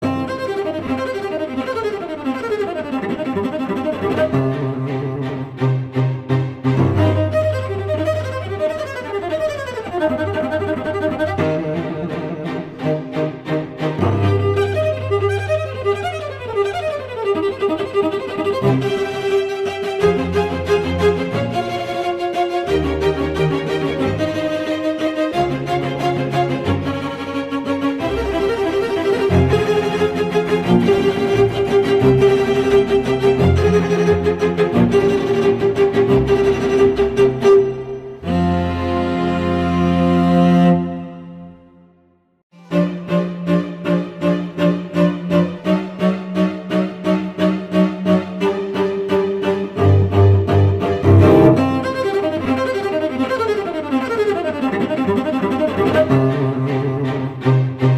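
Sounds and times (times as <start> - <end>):
cello playing: 0.0 - 57.9.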